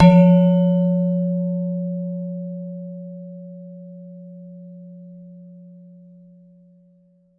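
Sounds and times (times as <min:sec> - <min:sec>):
gender gamelan metallophone: 0:00.0 - 0:01.0.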